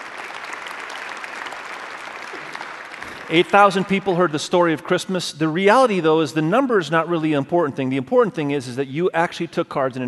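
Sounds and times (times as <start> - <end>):
audience applause: 0.0 - 4.0
speech: 3.3 - 10.0.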